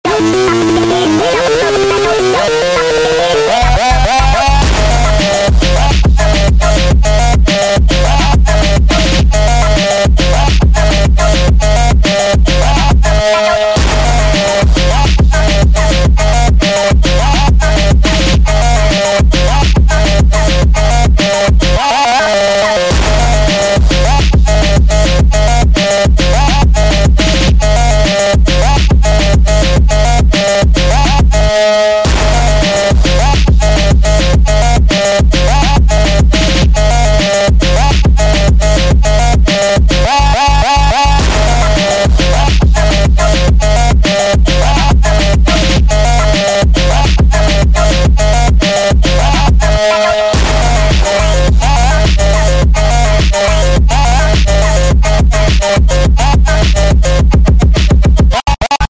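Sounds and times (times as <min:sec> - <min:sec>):
phonk music: 0:00.0 - 0:58.8.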